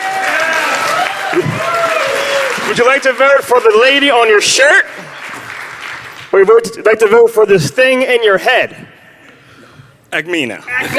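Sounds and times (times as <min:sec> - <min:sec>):
audience cheering: 0:00.0 - 0:04.2
audience applause: 0:00.0 - 0:06.4
speech: 0:02.7 - 0:05.0, 0:06.3 - 0:08.9, 0:10.1 - 0:10.9.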